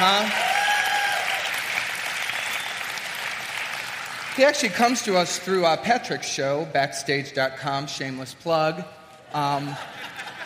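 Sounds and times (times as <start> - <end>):
audience applause: 0.0 - 5.0
speech: 4.4 - 10.0
laughter: 9.4 - 10.4.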